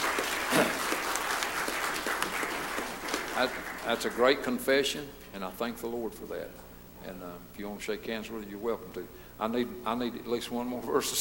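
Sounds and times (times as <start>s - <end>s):
church congregation applauding after a testimony: 0.0s - 5.0s
speech: 3.4s - 11.1s.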